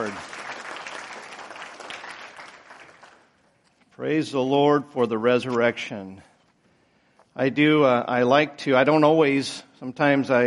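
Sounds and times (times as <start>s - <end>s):
audience applause: 0.0s - 3.3s
speech: 4.0s - 6.3s, 7.4s - 10.4s.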